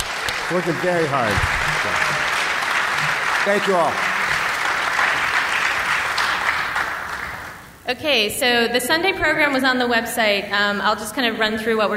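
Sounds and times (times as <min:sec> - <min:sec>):
audience round of applause: 0:00.0 - 0:07.7
speech: 0:00.5 - 0:02.0, 0:03.4 - 0:04.1, 0:07.9 - 0:11.9.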